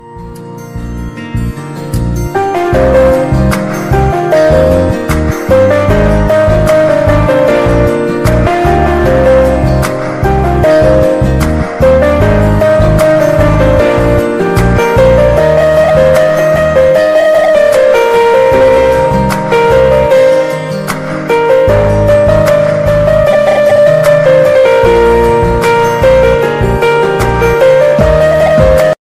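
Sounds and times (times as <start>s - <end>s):
Bollywood guitar music ringtone: 0.0s - 29.0s.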